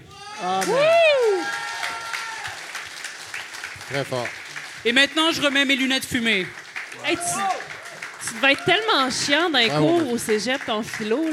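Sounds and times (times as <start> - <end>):
cheering voice whooping: 0.0 - 2.6, 7.0 - 7.7
speech: 0.4 - 0.9, 3.9 - 7.5, 8.3 - 11.3
audience applause: 0.4 - 11.3.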